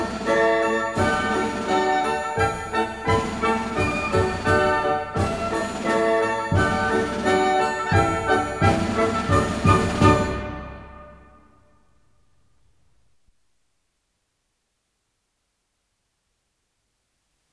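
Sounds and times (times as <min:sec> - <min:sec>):
wind ensemble playing military march in D major: 0:00.0 - 0:11.4.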